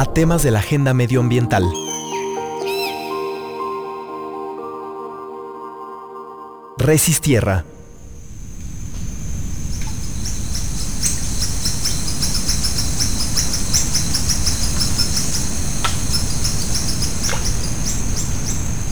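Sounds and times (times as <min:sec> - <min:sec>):
speech: 0:00.0 - 0:02.0, 0:06.8 - 0:07.7
Mexican jungle soundscape: 0:00.0 - 0:18.9
birds in Mexican jungle: 0:01.5 - 0:04.4, 0:07.7 - 0:18.9.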